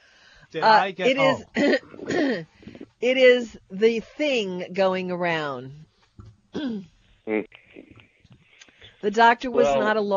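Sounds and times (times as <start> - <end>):
speech: 0.5 - 5.8, 6.6 - 7.6, 9.0 - 10.1
man coughing and clearing throat: 1.1 - 2.4.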